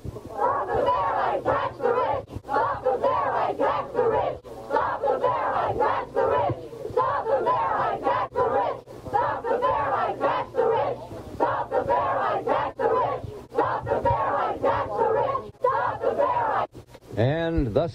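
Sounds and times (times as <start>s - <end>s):
protesters shouting: 0.3s - 16.7s.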